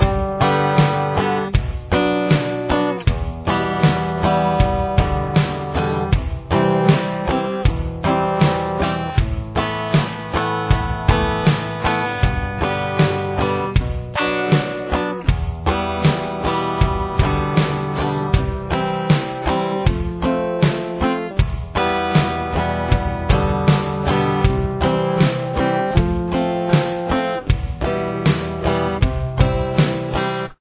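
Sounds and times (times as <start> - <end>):
guitar playing a verse: 0.0 - 30.6.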